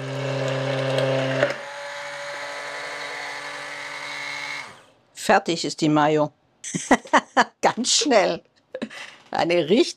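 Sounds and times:
stick blender whirring in a mixing cup blending soy milk, miso and mustard into mayo: 0.0s - 5.0s
speech: 5.3s - 9.9s.

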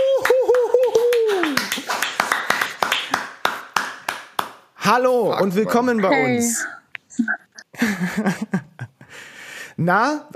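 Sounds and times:
applause: 0.0s - 4.6s
speech: 4.9s - 7.3s, 8.2s - 8.6s, 9.8s - 10.3s
laughter: 7.7s - 9.1s.

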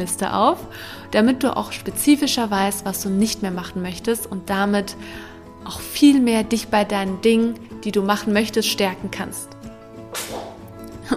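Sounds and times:
speech: 0.0s - 9.5s
sharp sneeze: 10.1s - 10.7s.

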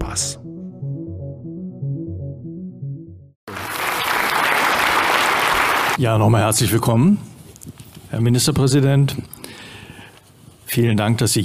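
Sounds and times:
tonal musical phrase: 0.0s - 3.3s
speech: 0.2s - 0.4s, 6.0s - 7.3s, 8.1s - 9.4s, 10.7s - 11.4s
audience applause: 3.5s - 6.0s.

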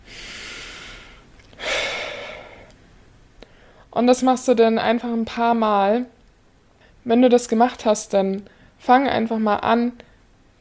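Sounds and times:
deep slow breath for a relaxation exercise: 0.0s - 2.8s, 3.4s - 3.9s
speech: 4.0s - 6.2s, 7.0s - 10.1s.

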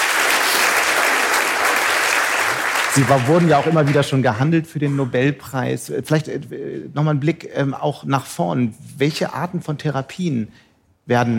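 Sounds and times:
audience applause: 0.0s - 4.2s
speech: 3.0s - 11.3s.

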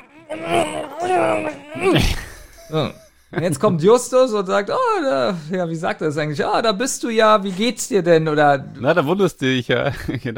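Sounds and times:
man imitating muffled groans of a gagged man: 0.0s - 3.1s
speech: 0.3s - 10.3s.

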